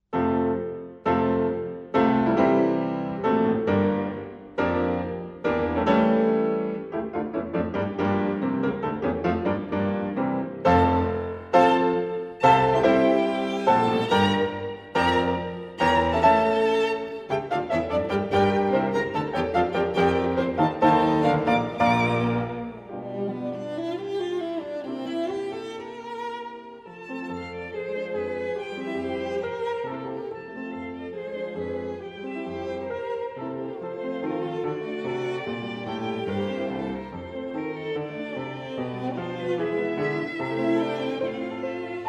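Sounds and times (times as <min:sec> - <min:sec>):
piano trio: 0:00.1 - 0:25.2, 0:27.5 - 0:42.0.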